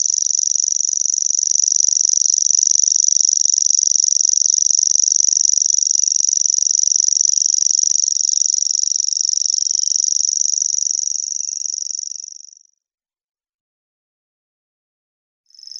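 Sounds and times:
common grasshopper warbler song: 0:00.0 - 0:12.6.

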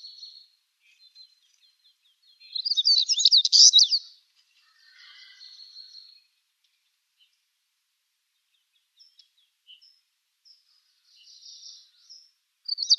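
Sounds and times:
Siberian stonechat loud scratchy twittering song: 0:02.6 - 0:04.0.

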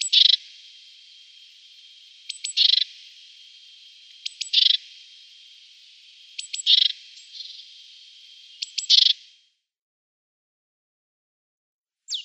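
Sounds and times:
great tit churring: 0:00.0 - 0:09.3.

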